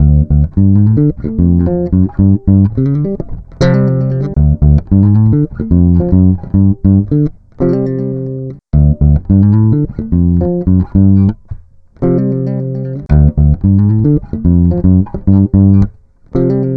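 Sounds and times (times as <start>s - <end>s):
electro lounge bass: 0.0s - 7.7s, 8.7s - 12.3s, 13.1s - 16.6s.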